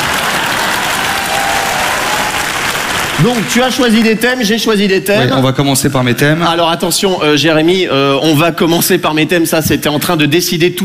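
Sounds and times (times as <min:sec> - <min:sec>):
crowd applause: 0:00.0 - 0:04.2
speech: 0:03.2 - 0:10.8.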